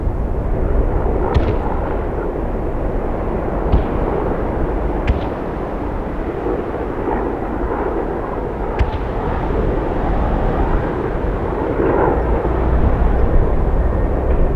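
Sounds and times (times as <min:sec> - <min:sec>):
outdoor battle ambience: 0:00.0 - 0:14.5.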